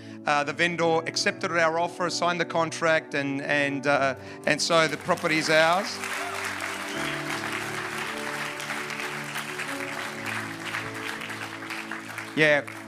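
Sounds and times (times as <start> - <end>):
speech: 0.2 - 7.3, 12.4 - 12.8
audience clapping: 4.5 - 12.8.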